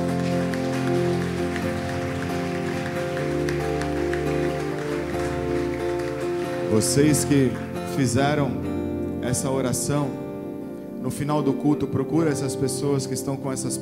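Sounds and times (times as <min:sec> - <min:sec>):
audience applause: 0:00.0 - 0:07.8
speech: 0:06.7 - 0:10.2, 0:11.0 - 0:13.8.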